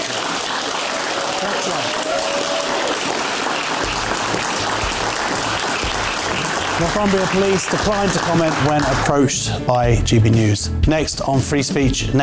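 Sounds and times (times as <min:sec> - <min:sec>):
studio audience applause: 0:00.0 - 0:09.4
speech: 0:01.4 - 0:03.1, 0:06.8 - 0:12.2.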